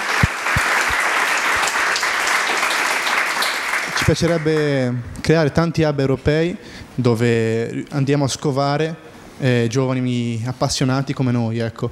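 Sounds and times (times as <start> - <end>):
crowd applauding: 0.0 - 4.8
speech: 4.1 - 11.9.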